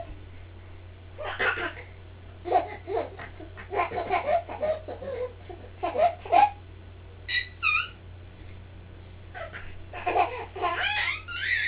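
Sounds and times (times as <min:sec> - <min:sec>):
belly laughing: 0:01.2 - 0:06.6, 0:09.3 - 0:11.6.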